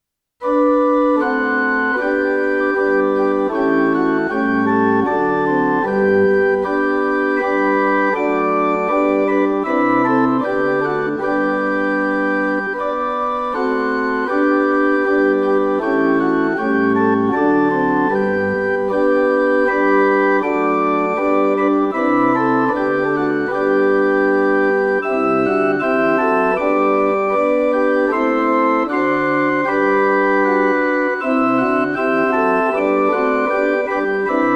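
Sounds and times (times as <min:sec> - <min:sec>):
backing track: 0:00.4 - 0:34.5.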